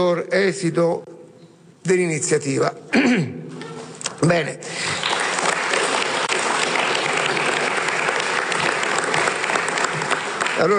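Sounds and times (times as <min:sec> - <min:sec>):
speech: 0:00.0 - 0:01.1, 0:01.8 - 0:03.4, 0:04.2 - 0:05.0, 0:10.6 - 0:10.7
audience applause: 0:04.8 - 0:10.7.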